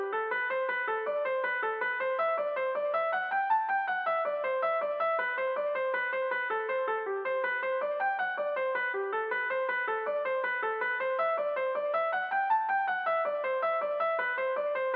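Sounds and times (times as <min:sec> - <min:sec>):
piano music from an action RPG game: 0:00.0 - 0:14.9.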